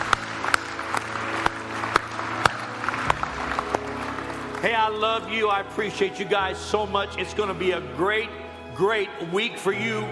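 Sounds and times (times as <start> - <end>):
church congregation clapping: 0.0 - 6.3
speech: 4.6 - 10.1.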